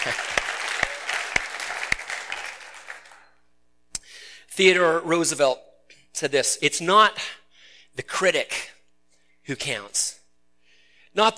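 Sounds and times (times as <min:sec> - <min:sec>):
speech: 0:00.0 - 0:00.4, 0:04.6 - 0:07.4, 0:08.0 - 0:08.7, 0:09.5 - 0:10.2, 0:11.2 - 0:11.3
audience applause: 0:00.0 - 0:03.4.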